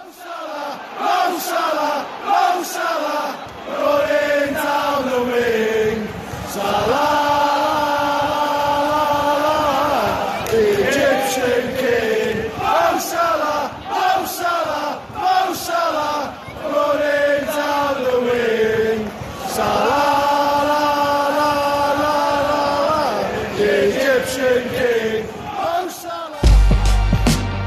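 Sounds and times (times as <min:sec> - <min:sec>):
football fans chanting in stadium: 0:00.0 - 0:27.5.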